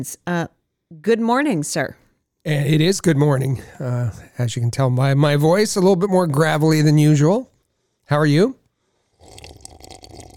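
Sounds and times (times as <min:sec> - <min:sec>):
speech: 0:00.0 - 0:07.5, 0:08.1 - 0:08.6
slurping coffee: 0:09.1 - 0:10.3.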